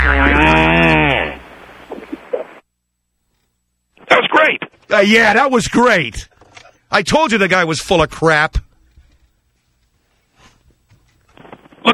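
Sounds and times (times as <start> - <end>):
kangaroo fart: 0.0 - 2.6
speech: 5.0 - 6.3, 6.9 - 8.6.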